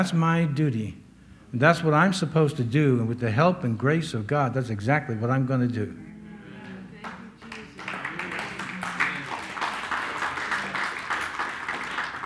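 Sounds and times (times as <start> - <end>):
speech: 0.0 - 6.0
audience applause: 7.0 - 12.2.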